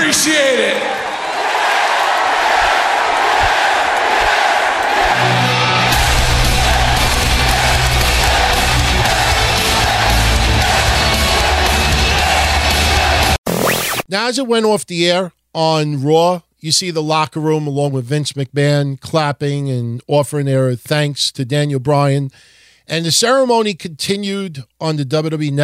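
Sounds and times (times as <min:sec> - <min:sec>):
arena crowd chanting yes: 0:00.0 - 0:13.4
speech: 0:00.1 - 0:01.1, 0:14.1 - 0:25.6.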